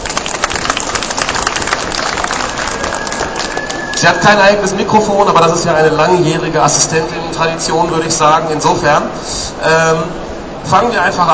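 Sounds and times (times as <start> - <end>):
audience applause: 0.0 - 4.7
speech: 4.0 - 11.3.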